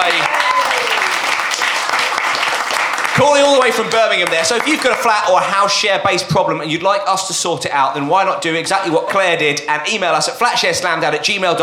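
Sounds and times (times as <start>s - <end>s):
round of applause: 0.0s - 5.3s
speech: 3.2s - 11.6s.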